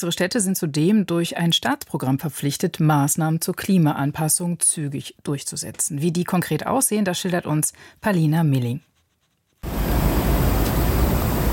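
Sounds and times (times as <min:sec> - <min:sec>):
speech: 0:00.0 - 0:08.9
water sprinkler spraying fine droplets: 0:09.6 - 0:11.5.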